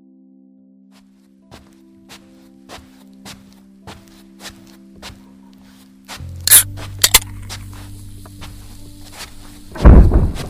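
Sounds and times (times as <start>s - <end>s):
crashing and thudding of a bedroom being trashed: 9.7s - 10.4s.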